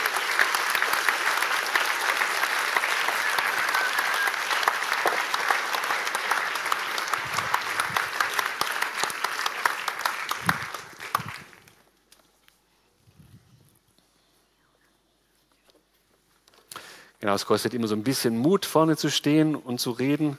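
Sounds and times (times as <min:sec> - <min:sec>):
audience applause: 0:00.0 - 0:11.8
speech: 0:17.3 - 0:20.3.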